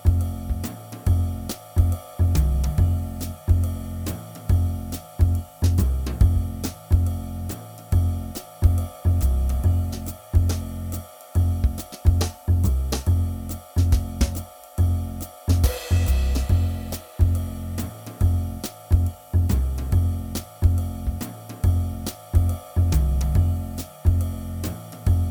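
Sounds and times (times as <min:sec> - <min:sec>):
jazz swing drone: 0:00.0 - 0:25.3.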